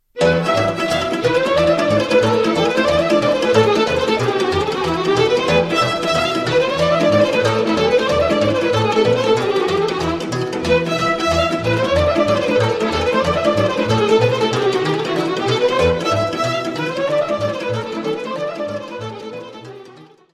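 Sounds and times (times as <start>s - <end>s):
Romanian folk dance tune: 0.0s - 20.2s.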